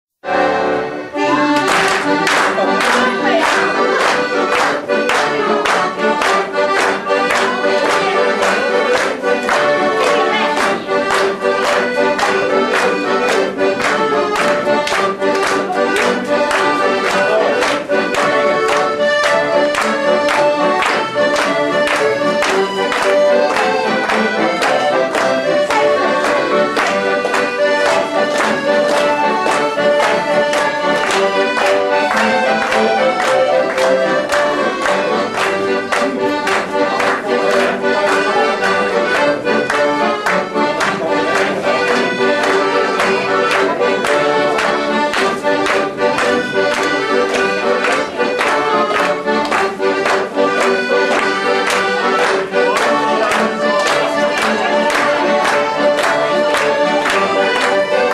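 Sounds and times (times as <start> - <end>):
galop music: 0.2 - 58.1.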